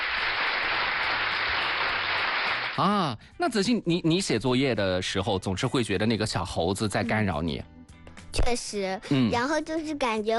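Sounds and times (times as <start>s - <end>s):
group applauding in a children's learning session: 0.0s - 2.8s
speech: 2.8s - 7.8s, 8.5s - 10.3s.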